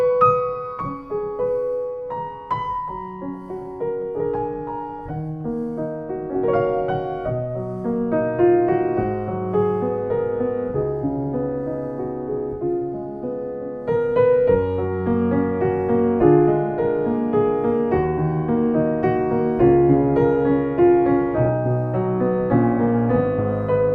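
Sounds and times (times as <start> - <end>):
Yamaha C3 grand piano: 0.0 - 23.9.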